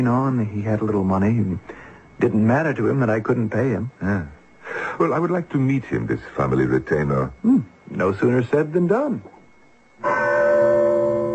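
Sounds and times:
speech: 0.0s - 4.4s, 5.0s - 9.3s
large bell rung to summon servants: 10.0s - 11.3s.

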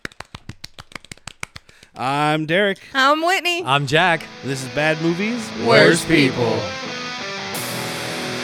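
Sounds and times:
golf clap: 0.0s - 2.0s
speech: 2.0s - 6.8s.

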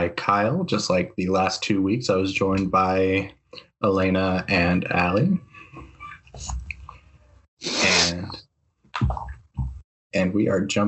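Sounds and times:
speech: 0.0s - 6.6s, 9.0s - 9.3s, 10.1s - 10.8s
sniffle: 7.6s - 8.3s.

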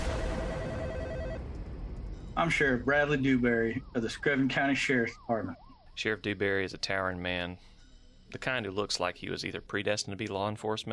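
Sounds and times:
telephone ringing on an outgoing call: 0.0s - 1.4s
faint low hiss: 0.0s - 10.9s
speech: 2.4s - 7.7s, 8.3s - 10.9s.

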